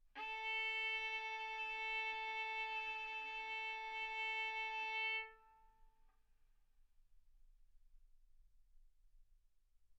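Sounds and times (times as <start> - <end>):
violin bowed mezzo-forte on the A string, A4 and B4: 0.2 - 5.7.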